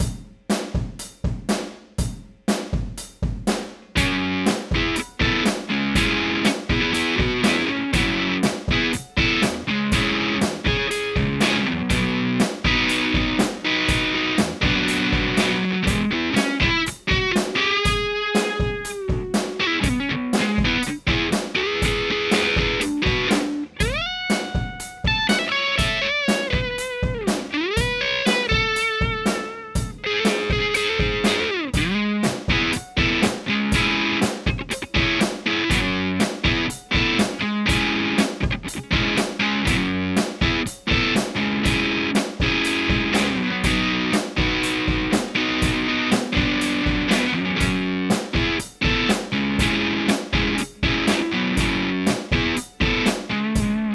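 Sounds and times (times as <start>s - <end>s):
drums: 0.0s - 53.9s.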